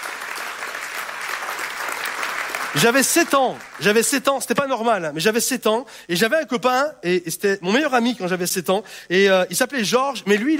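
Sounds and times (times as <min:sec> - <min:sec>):
audience applauding: 0:00.0 - 0:04.2
speech: 0:02.7 - 0:10.5.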